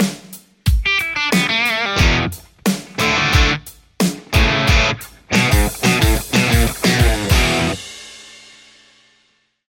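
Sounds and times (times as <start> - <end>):
Telecaster electric guitar through a JCM800 amplifier: 0.9 - 3.7, 4.3 - 7.8.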